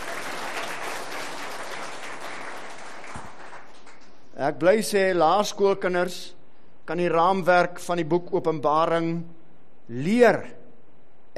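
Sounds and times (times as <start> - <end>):
audience applause: 0.0 - 4.1
speech: 4.4 - 10.6.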